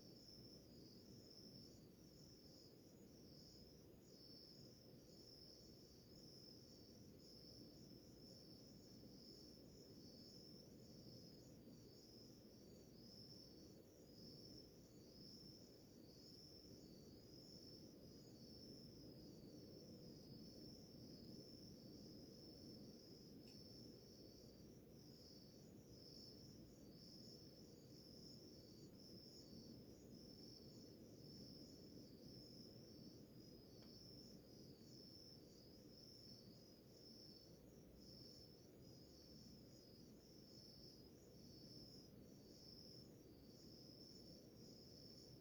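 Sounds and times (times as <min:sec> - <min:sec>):
crickets trilling: 0:00.1 - 0:45.4.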